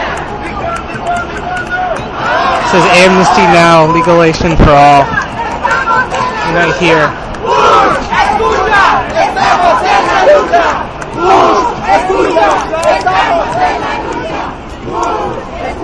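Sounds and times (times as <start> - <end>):
loud crowd shouting at an immigration protest: 0.0 - 15.8
speech: 2.7 - 5.2, 6.5 - 8.0, 9.4 - 13.9.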